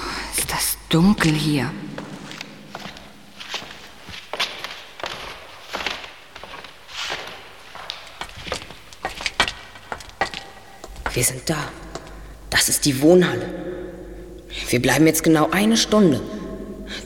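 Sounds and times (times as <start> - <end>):
faint hiss: 0.0 - 17.0
footsteps of people walking into a dark building: 0.3 - 12.4
speech: 0.9 - 1.8, 11.2 - 11.8, 12.6 - 13.8, 14.7 - 16.4.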